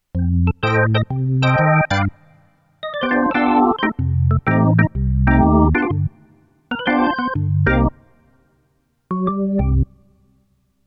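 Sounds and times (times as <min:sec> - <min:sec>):
Roland RD-88 VK organ: 0:00.2 - 0:02.2, 0:02.8 - 0:08.0.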